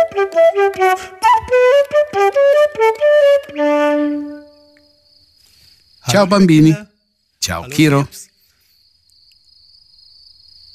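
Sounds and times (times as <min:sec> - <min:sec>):
speech: 0:00.2 - 0:01.3, 0:02.2 - 0:04.4, 0:06.1 - 0:08.3
cricket chirping: 0:03.1 - 0:10.7.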